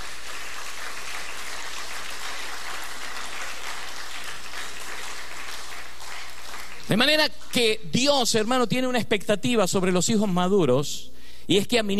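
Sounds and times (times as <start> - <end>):
audience applause: 0.0 - 7.0
speech: 6.9 - 11.9.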